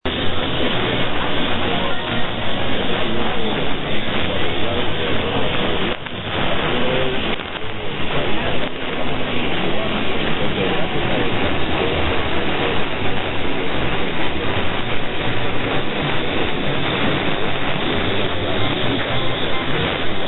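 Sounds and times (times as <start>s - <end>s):
Radio Caribe Cuba radio broadcast: 0.1s - 20.2s.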